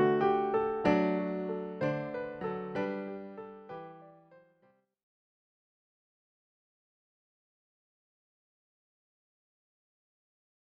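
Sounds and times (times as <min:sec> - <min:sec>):
jazz piano wedding processional: 0:00.0 - 0:04.2.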